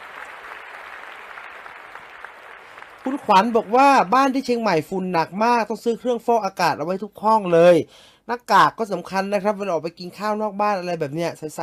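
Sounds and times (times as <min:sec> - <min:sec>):
applause: 0:00.0 - 0:05.0
speech: 0:03.0 - 0:11.6.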